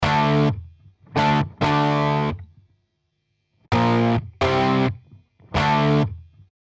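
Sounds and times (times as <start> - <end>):
distorted electric guitar with Tube Culture tape settings: 0.0 - 2.4, 3.7 - 6.2.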